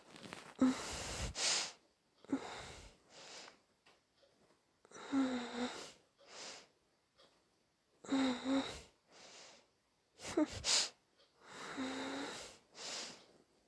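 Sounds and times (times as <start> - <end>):
person breathing heavily, quiet and nervous: 0.6 - 3.6, 4.9 - 6.7, 8.1 - 13.4.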